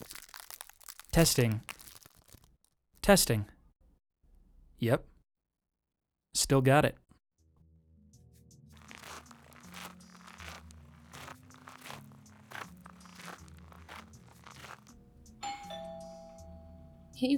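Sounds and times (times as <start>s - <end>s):
crunching rustling noise: 0.0s - 2.5s, 8.8s - 15.2s
speech: 1.2s - 1.7s, 3.1s - 3.5s, 4.8s - 5.1s, 6.4s - 7.0s, 17.2s - 17.3s
doorbell ringing: 15.4s - 17.1s.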